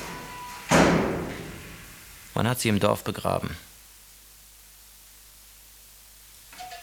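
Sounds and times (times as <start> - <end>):
door shut by a person leaving: 0.1 - 1.8
speech: 2.4 - 3.7.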